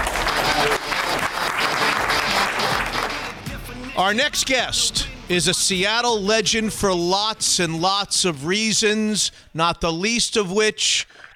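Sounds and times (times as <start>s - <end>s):
audience applause welcoming Seattle XFL head coach Jim Zorn: 0.0s - 3.5s
speech: 4.0s - 11.3s.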